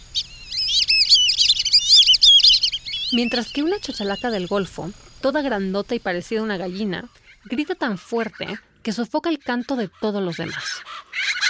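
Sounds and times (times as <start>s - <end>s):
whistling ducks whistling: 0.0s - 4.6s, 8.2s - 8.7s, 9.7s - 11.4s
speech: 3.1s - 10.9s.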